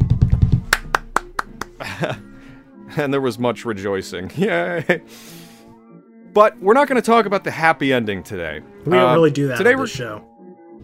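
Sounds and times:
clapping: 0:00.7 - 0:01.8
speech: 0:01.8 - 0:05.4, 0:06.4 - 0:10.3.

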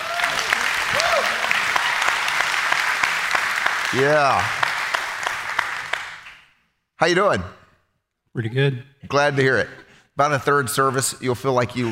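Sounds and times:
voices and cheers: 0:00.0 - 0:02.6
church service audience applause welcoming guests onto the stage: 0:00.0 - 0:06.4
speech: 0:03.9 - 0:04.6, 0:07.0 - 0:07.6, 0:08.4 - 0:11.9.

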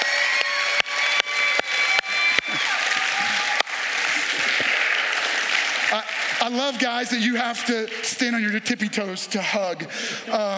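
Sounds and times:
cheers or whistles: 0:00.0 - 0:03.8
audience applause: 0:00.0 - 0:08.6
speech: 0:05.9 - 0:10.5.

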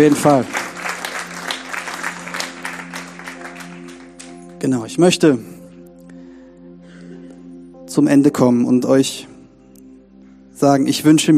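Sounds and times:
speech: 0:00.0 - 0:00.6, 0:04.6 - 0:05.5, 0:08.0 - 0:09.3, 0:10.6 - 0:11.3
audience applause: 0:00.0 - 0:04.4.

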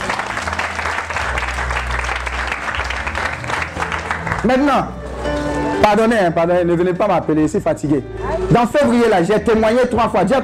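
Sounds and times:
church congregation clapping: 0:00.0 - 0:05.6
speech: 0:04.4 - 0:05.0, 0:05.8 - 0:10.4.

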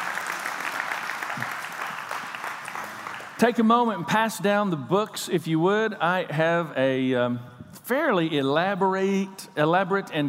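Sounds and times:
audience hand clapping: 0:00.0 - 0:03.7
speech: 0:03.4 - 0:10.2.

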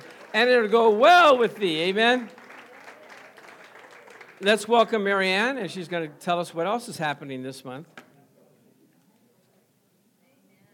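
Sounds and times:
audience applause: 0:00.0 - 0:05.6
speech: 0:00.3 - 0:02.4, 0:04.4 - 0:08.0.

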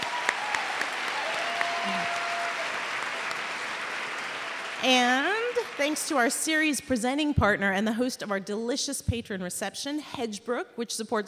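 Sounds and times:
sharp individual claps: 0:00.0 - 0:06.0
audience applause: 0:00.0 - 0:06.4
speech: 0:04.8 - 0:11.2.

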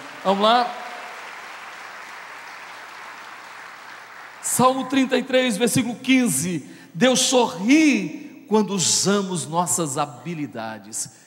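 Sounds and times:
audience applause: 0:00.0 - 0:04.6
speech: 0:00.2 - 0:00.8, 0:04.6 - 0:11.2.

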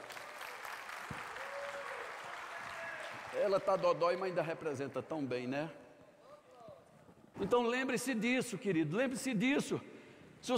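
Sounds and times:
audience applause: 0:00.0 - 0:04.3
speech: 0:03.4 - 0:05.8, 0:07.4 - 0:10.5.

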